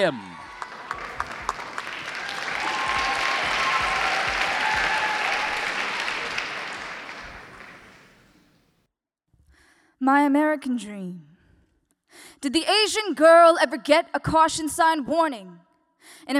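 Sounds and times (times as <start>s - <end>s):
speech: 0.0s - 0.3s, 10.1s - 11.3s, 12.4s - 16.3s
audience applause: 0.0s - 8.4s.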